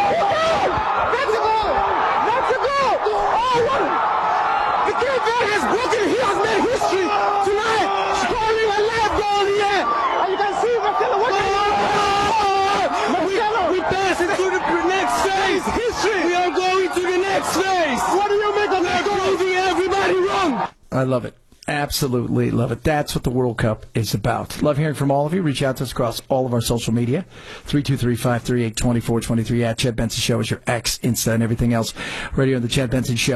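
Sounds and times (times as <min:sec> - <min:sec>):
large crowd roaring and cheering a goal: 0:00.0 - 0:20.8
speech: 0:21.0 - 0:33.3.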